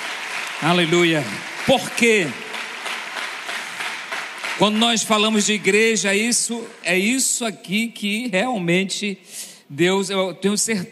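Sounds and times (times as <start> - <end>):
audience applause: 0.0 - 6.8
speech: 0.6 - 2.4, 4.6 - 10.9.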